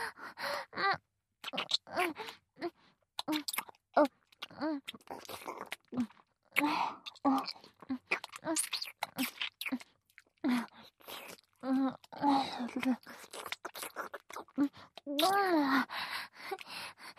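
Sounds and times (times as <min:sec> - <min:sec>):
gasps and breathy voiced sounds: 0:00.0 - 0:03.7, 0:04.4 - 0:17.1
wet kissing and lip-smacking sounds: 0:01.4 - 0:02.4, 0:05.2 - 0:09.9, 0:13.1 - 0:15.4.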